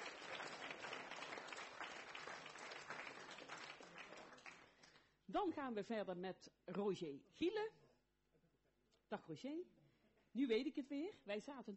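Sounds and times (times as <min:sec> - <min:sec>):
audience applause: 0:00.0 - 0:05.0
speech: 0:05.3 - 0:07.8, 0:09.1 - 0:11.7.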